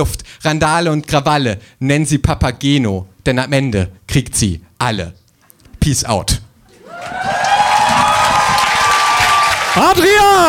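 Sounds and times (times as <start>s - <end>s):
speech: 0.0s - 5.2s, 5.8s - 6.4s, 9.8s - 10.4s
audience applause: 6.7s - 10.4s.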